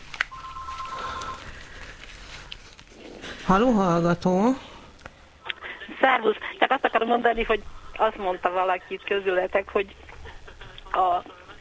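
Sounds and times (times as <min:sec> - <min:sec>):
telephone ringing as a call comes in: 0:00.3 - 0:01.6
speech: 0:03.5 - 0:04.7, 0:06.0 - 0:10.0, 0:11.0 - 0:11.4.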